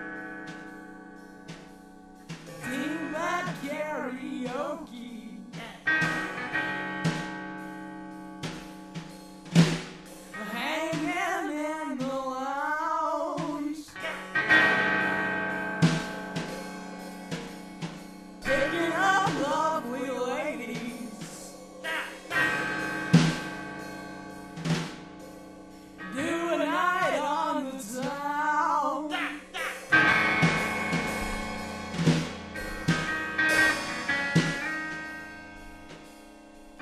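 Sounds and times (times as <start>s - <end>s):
karaoke singing: 2.3s - 7.3s, 10.3s - 16.2s, 18.4s - 23.7s, 26.0s - 35.4s.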